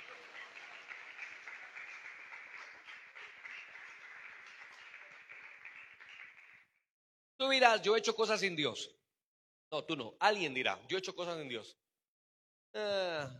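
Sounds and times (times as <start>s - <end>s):
audience applause: 0.0s - 6.7s
speech: 7.4s - 9.0s, 9.7s - 11.8s, 12.7s - 13.3s.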